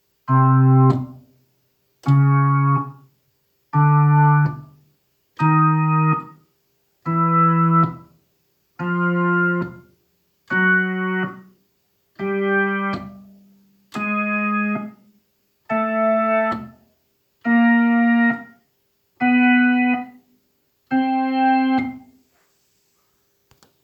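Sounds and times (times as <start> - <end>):
Hammond organ: 2.0 - 3.0, 3.8 - 4.7, 5.4 - 6.4, 7.1 - 8.1, 8.8 - 9.8, 10.5 - 11.4, 12.2 - 13.2, 13.9 - 15.0, 15.7 - 16.8, 17.4 - 18.5, 19.2 - 20.1, 20.9 - 22.0.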